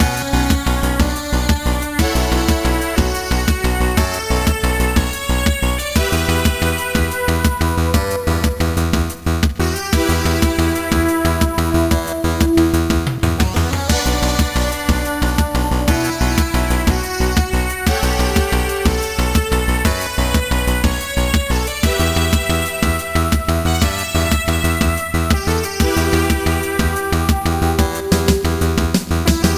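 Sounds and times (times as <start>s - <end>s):
Easter Island music loop: 0.0s - 29.5s.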